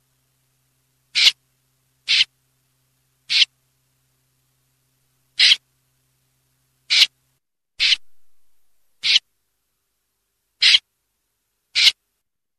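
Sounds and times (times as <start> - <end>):
snipe calling: 1.1 - 1.4, 2.1 - 2.3, 3.3 - 3.5, 5.4 - 5.6, 6.9 - 7.1, 7.8 - 9.2, 10.6 - 10.8, 11.8 - 12.0.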